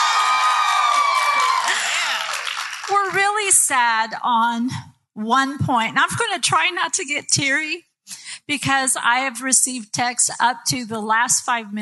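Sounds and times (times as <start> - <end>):
live audience at a ladies' night event shouting and cheering: 0.0 - 2.9
speech: 3.5 - 11.8.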